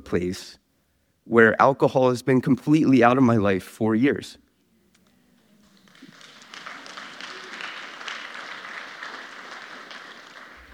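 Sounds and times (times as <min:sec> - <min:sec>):
speech: 0:00.1 - 0:00.6, 0:01.3 - 0:04.4
audience applause: 0:05.7 - 0:10.7.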